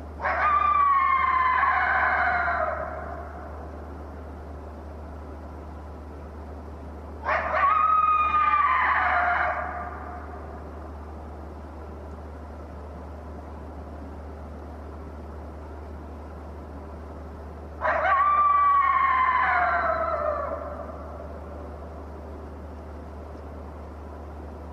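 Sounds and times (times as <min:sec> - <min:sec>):
lone coyote howling: 0:00.2 - 0:03.7, 0:07.2 - 0:10.8, 0:17.8 - 0:21.7.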